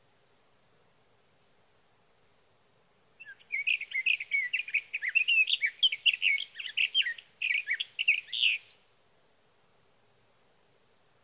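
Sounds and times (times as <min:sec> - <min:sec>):
sage thrasher song: 0:03.2 - 0:08.8.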